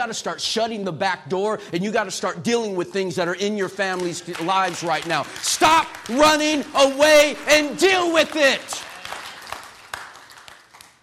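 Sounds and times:
speech: 0:00.0 - 0:08.9
weak audience applause: 0:04.0 - 0:11.0.

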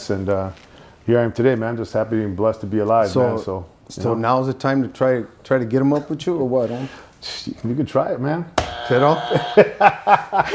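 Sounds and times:
speech: 0:00.1 - 0:10.5
harsh buzzer sound effect: 0:08.6 - 0:09.8
laughter: 0:09.1 - 0:10.5.

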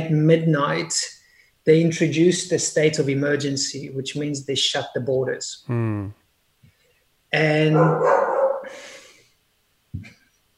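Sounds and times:
speech: 0:00.0 - 0:06.2, 0:07.3 - 0:08.9, 0:10.0 - 0:10.2
dog barking: 0:07.7 - 0:08.8.

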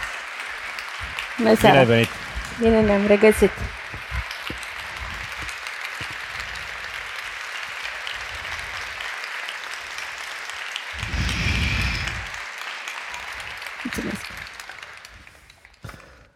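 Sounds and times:
studio audience applause: 0:00.0 - 0:16.3
speech: 0:01.0 - 0:03.8.

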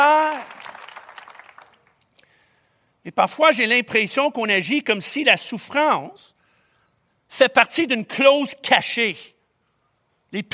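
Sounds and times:
audience applause: 0:00.0 - 0:01.9
speech: 0:03.0 - 0:06.4, 0:07.3 - 0:09.4, 0:10.3 - 0:10.5.

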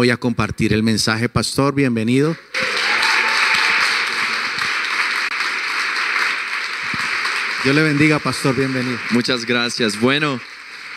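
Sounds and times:
speech: 0:00.0 - 0:02.6, 0:07.6 - 0:10.5
church congregation applauding to welcome a pastor: 0:02.5 - 0:10.9.

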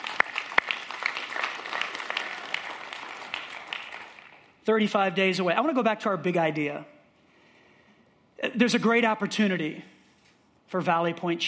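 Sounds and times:
audience clapping: 0:00.0 - 0:04.6
speech: 0:04.7 - 0:06.9, 0:08.4 - 0:09.9, 0:10.7 - 0:11.4.

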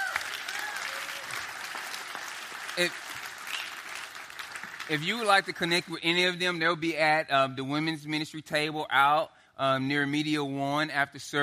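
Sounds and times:
audience applauding steadily: 0:00.0 - 0:05.6
speech: 0:02.8 - 0:03.0, 0:04.9 - 0:11.4.

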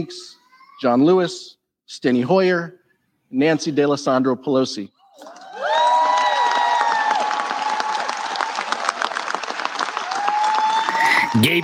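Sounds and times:
speech: 0:00.0 - 0:05.4, 0:11.4 - 0:11.6
lawmakers cheering and whooping: 0:05.0 - 0:11.6
lawmakers applauding on House floor: 0:05.1 - 0:11.6.

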